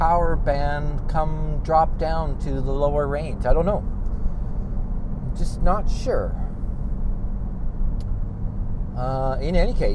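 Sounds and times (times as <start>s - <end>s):
car engine and aftermarket exhaust rumbling: 0.0s - 9.9s
speech: 0.4s - 4.0s, 5.4s - 6.5s, 9.0s - 9.9s.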